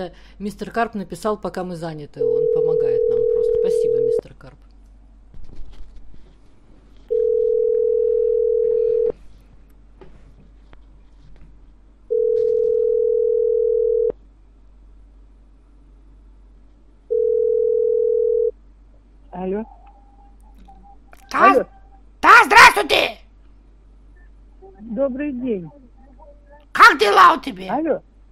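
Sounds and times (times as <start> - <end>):
speech: 0.0 - 4.7, 25.0 - 25.8, 26.8 - 28.3
faint noise: 0.0 - 28.3
telephone ringback tone while a number is being called: 7.1 - 9.1, 12.1 - 14.1, 17.1 - 18.5.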